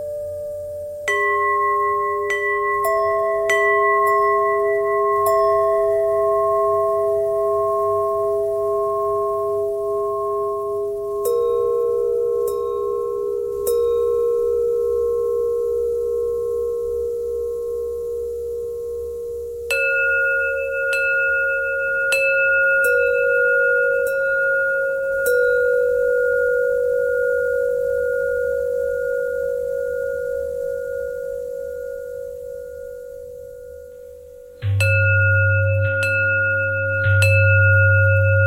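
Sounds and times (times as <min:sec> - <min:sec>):
bell bend threads: 0:00.0 - 0:38.4.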